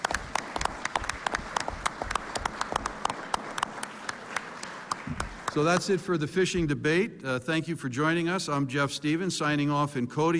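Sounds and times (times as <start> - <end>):
audience applause: 0.0 - 5.9
speech: 5.6 - 10.3.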